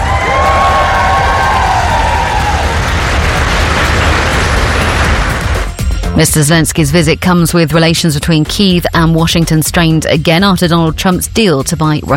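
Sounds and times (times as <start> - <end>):
Foreign Office staff cheering: 0.0 - 5.7
speech: 6.2 - 12.1.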